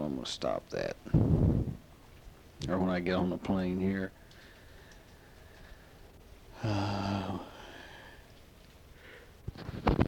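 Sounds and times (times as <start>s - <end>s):
speech: 0.2s - 1.5s, 2.6s - 4.2s, 6.6s - 7.5s
quieter breathy sounds: 4.2s - 9.4s
person yawning: 6.6s - 8.0s.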